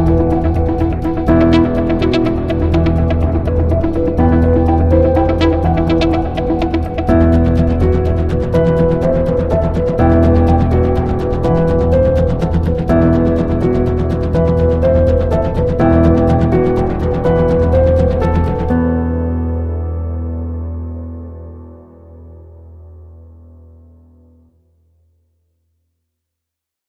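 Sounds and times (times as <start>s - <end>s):
suspense music: 0.0s - 21.4s.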